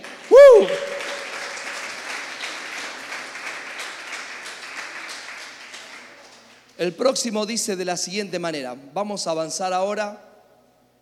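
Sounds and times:
audience applauding: 0.0 - 6.8
speech: 6.8 - 10.3.

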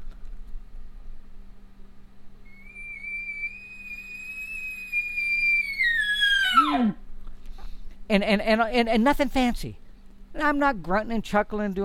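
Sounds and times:
low steady hum: 0.0 - 11.0
imitated elk bugle call: 2.5 - 7.1
speech: 8.1 - 9.8, 10.4 - 11.8.

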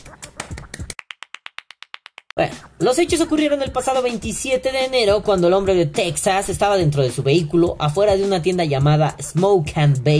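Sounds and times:
single person clapping: 0.1 - 2.4
speech: 2.4 - 10.1.

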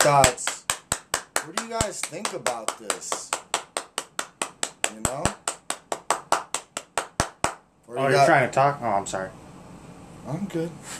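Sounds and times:
speech: 0.0 - 0.5, 1.4 - 3.3, 4.9 - 5.4, 7.9 - 9.4, 10.3 - 10.9
hands clapping: 0.0 - 7.7.

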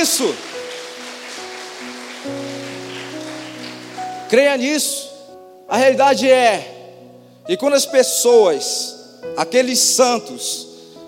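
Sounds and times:
speech: 0.0 - 0.7, 4.3 - 5.1, 5.7 - 6.8, 7.5 - 10.7
audience applause: 0.0 - 4.3.

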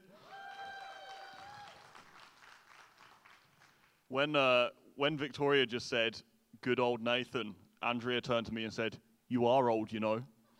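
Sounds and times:
group cheering and clapping: 0.0 - 4.0
loud high whoop or whistle: 0.1 - 1.9
speech: 4.1 - 10.3.

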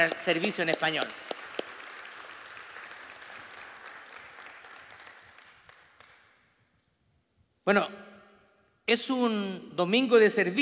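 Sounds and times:
speech: 0.0 - 1.2, 7.7 - 8.1, 8.9 - 10.6
crowd applauding: 0.0 - 6.4.

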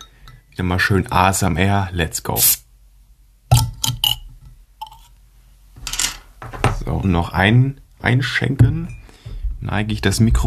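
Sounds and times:
speech: 0.6 - 2.6, 7.1 - 9.0, 9.6 - 10.4
bottle being opened: 3.5 - 5.1.

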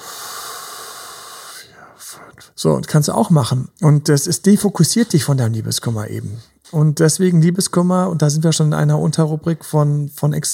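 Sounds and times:
inhale during a box breathing exercise: 0.0 - 2.6
speech: 2.0 - 10.5.

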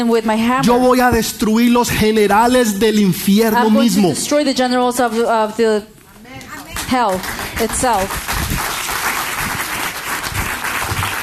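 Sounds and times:
speech: 0.0 - 6.0, 6.9 - 8.3
audience applause: 6.6 - 11.2.

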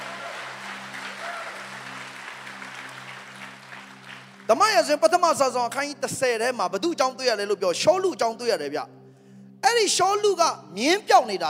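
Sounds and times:
church congregation clapping hands in praise during a Sunday sermon: 0.0 - 6.2
speech: 4.5 - 9.0, 9.7 - 11.4.

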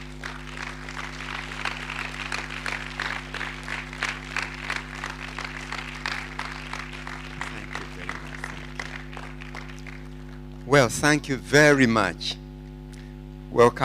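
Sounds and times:
congregation applauding to welcome a pastor at a church gathering: 0.0 - 10.9
constant low electrical hum: 0.0 - 13.8
speech: 10.8 - 12.4, 13.5 - 13.8.

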